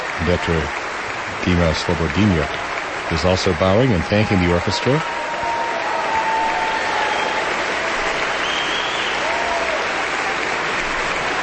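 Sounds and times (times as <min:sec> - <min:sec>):
audience applauding a standing ovation: 0:00.0 - 0:11.4
speech: 0:00.2 - 0:00.8, 0:01.4 - 0:05.2.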